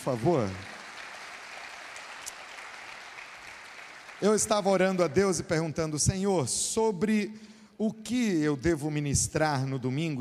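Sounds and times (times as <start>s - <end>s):
speech: 0.0s - 0.7s, 4.2s - 10.1s
audience applauding: 0.0s - 5.0s.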